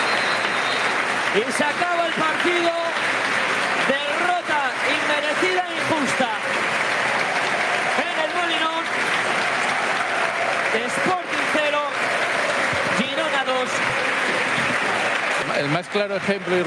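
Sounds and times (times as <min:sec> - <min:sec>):
whistles: 0:00.0 - 0:01.1
big stadium crowd applauding: 0:00.0 - 0:16.6
speech: 0:01.3 - 0:04.0, 0:15.6 - 0:16.6.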